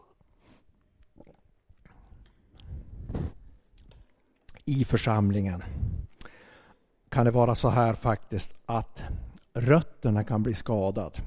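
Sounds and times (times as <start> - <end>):
person taking a small sip of a drink: 0.2 - 4.6
speech: 4.7 - 5.8, 7.2 - 11.2.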